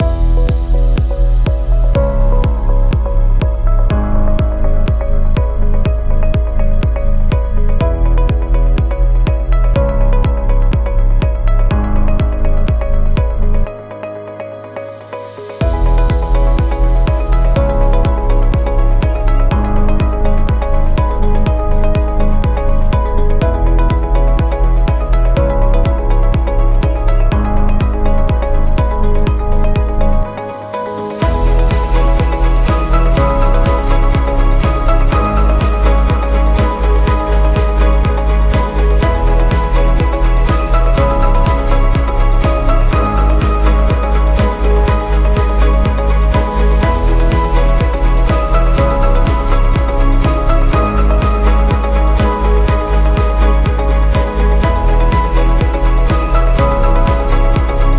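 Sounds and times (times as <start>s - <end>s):
corporate motivational music loop: 0.0s - 57.9s.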